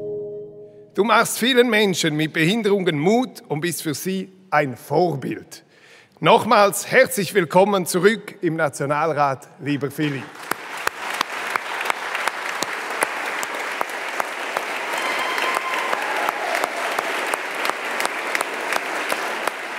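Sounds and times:
speech: 0:01.0 - 0:10.5
parliament applauding a returning member: 0:10.0 - 0:19.7.

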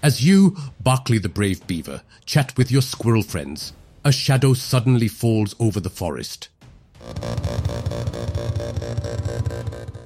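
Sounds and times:
speech: 0:00.0 - 0:08.8
drone hovering with buzzing metal blades: 0:07.0 - 0:10.0.

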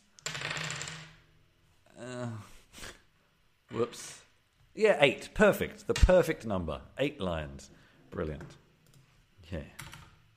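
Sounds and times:
dice rolling on a surface: 0:00.2 - 0:01.3
speech: 0:03.8 - 0:04.2, 0:04.8 - 0:08.6, 0:09.5 - 0:10.0.

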